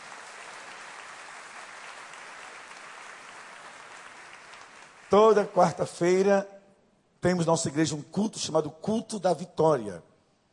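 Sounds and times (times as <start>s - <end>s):
audience applause: 0.0s - 5.4s
speech: 5.1s - 6.5s, 7.2s - 10.1s.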